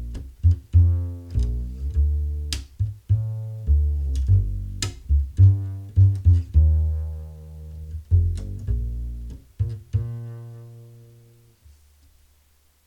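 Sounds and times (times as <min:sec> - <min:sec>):
string bass: 0:00.0 - 0:12.0.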